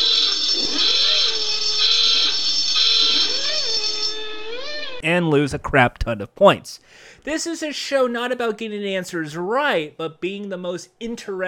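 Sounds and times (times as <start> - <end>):
klaxon buzzer for wrong answer: 0.0 - 5.0
speech: 5.0 - 11.4.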